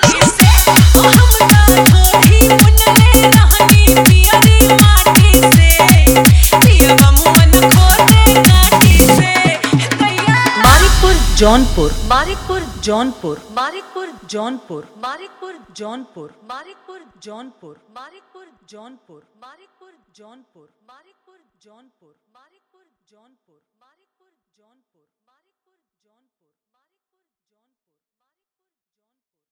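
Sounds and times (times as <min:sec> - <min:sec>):
dholak bass dance mix: 0:00.0 - 0:13.7.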